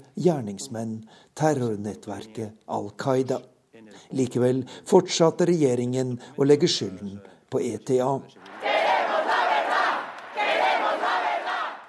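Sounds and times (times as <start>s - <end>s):
speech: 0.1s - 8.7s
thousands of demonstrators shouting: 8.4s - 11.8s.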